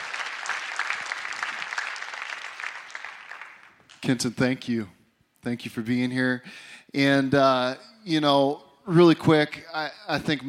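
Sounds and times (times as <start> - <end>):
audience applause welcoming a pastor at a Life Center church gathering: 0.0 - 4.4
speech: 4.0 - 10.4.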